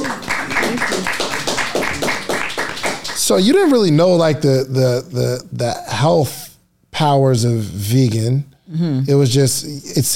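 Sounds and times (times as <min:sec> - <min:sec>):
people clapping: 0:00.0 - 0:03.8
speech: 0:03.3 - 0:06.4, 0:07.0 - 0:10.1.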